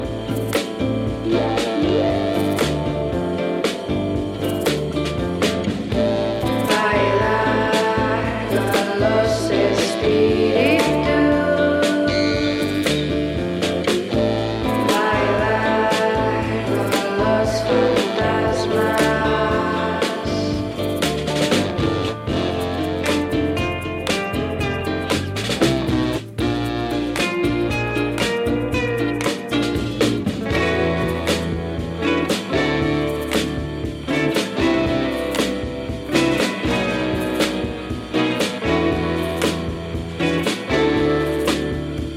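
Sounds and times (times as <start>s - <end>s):
ghost funk music: 0.0s - 42.1s.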